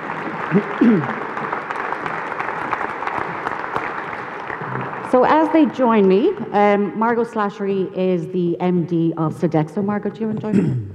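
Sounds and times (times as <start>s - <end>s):
audience round of applause: 0.0s - 6.3s
speech: 0.5s - 1.2s, 5.1s - 10.9s.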